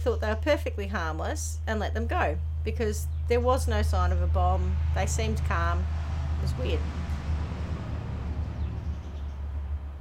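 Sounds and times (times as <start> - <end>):
speech: 0.0 - 7.0
heavy truck rumbling past outside: 3.9 - 9.9.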